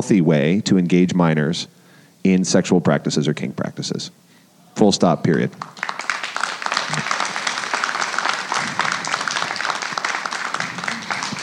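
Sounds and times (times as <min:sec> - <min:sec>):
speech: 0:00.0 - 0:06.1
audience clapping: 0:05.3 - 0:11.4.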